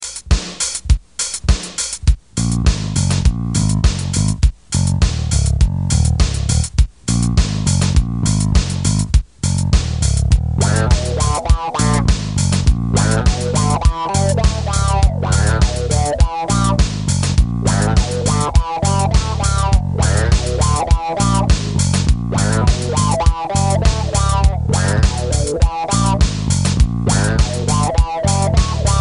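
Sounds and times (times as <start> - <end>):
funk music: 0.0 - 29.0.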